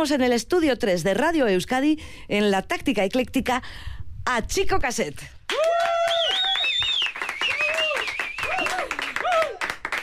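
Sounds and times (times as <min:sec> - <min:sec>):
speech: 0:00.0 - 0:05.6
whoops and cheering voices: 0:05.5 - 0:09.8
people clapping: 0:05.5 - 0:10.0.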